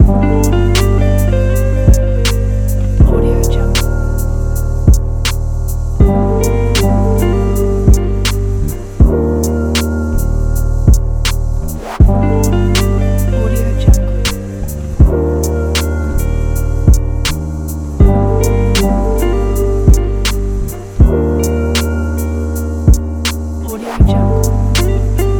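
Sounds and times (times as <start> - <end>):
relaxing music loop: 0.0 - 25.3.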